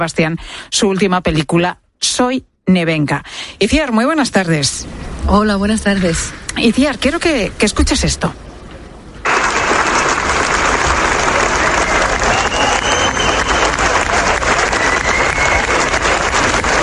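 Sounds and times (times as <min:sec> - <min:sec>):
speech: 0:00.0 - 0:08.4
ovation after a film screening: 0:09.2 - 0:16.8
faint whistles and cheers: 0:10.8 - 0:16.8.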